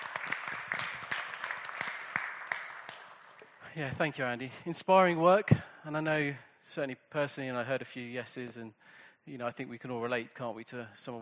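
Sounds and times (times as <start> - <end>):
audience applause: 0.0 - 3.6
speech: 3.8 - 11.2.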